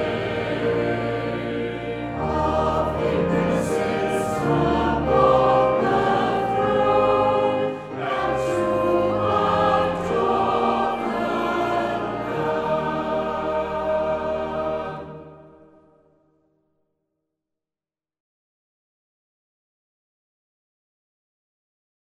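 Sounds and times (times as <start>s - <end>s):
choir singing hymns: 0.0s - 15.9s.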